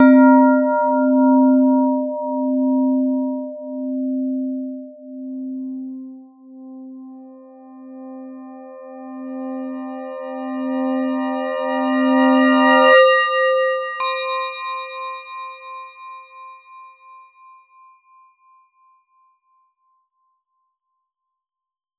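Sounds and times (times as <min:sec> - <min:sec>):
gong: 0:00.0 - 0:06.9, 0:07.8 - 0:17.4.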